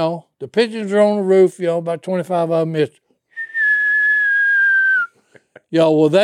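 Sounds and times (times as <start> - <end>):
speech: 0.0 - 3.0, 5.7 - 6.2
whistle of an incoming artillery round: 3.3 - 5.2.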